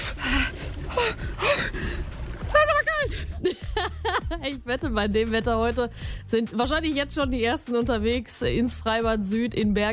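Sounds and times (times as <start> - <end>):
woman gasping and yelping: 0.0 - 2.1
water splashing: 0.0 - 3.5
laughter: 2.5 - 4.4
speech: 4.5 - 9.9.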